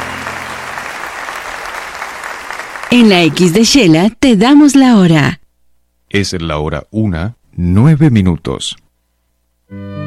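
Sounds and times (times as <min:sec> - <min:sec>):
applause from a crowd: 0:00.0 - 0:03.6
speech: 0:02.9 - 0:05.4, 0:06.1 - 0:08.8, 0:09.7 - 0:09.9.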